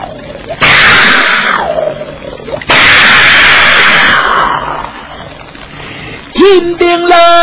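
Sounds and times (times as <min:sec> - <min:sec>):
cannon firing: 0:00.6 - 0:01.8, 0:02.6 - 0:04.5
speech: 0:06.4 - 0:07.3.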